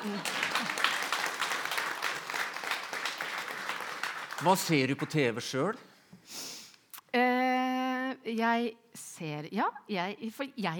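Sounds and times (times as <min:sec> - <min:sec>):
speech: 0:00.0 - 0:00.7, 0:04.4 - 0:06.4, 0:08.2 - 0:10.7
clapping: 0:00.0 - 0:05.2.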